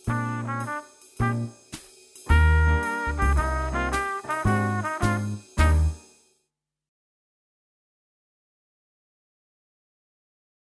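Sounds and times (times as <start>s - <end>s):
smooth groove trumpet: 0.0s - 6.2s.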